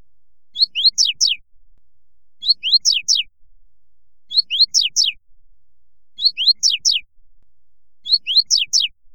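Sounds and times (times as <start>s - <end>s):
Coleiro Tui Tui Fibra singing: 0.5s - 1.4s, 2.4s - 3.3s, 4.3s - 5.2s, 6.1s - 7.1s, 8.0s - 9.0s.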